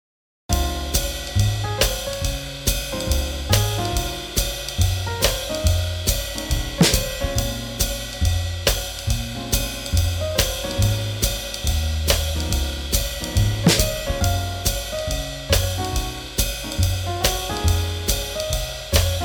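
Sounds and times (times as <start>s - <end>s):
swing jazz: 0.5s - 19.2s.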